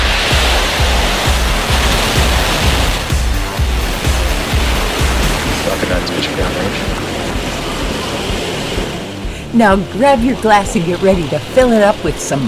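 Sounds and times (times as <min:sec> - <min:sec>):
rocket launch roar: 0:00.0 - 0:09.2
speech: 0:09.6 - 0:12.4.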